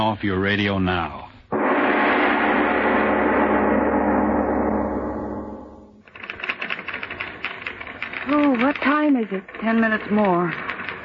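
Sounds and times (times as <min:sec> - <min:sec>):
speech: 0:00.0 - 0:01.3, 0:08.3 - 0:10.7
loud sustained musical chord: 0:01.5 - 0:06.0
typewriter clacking: 0:06.1 - 0:11.0.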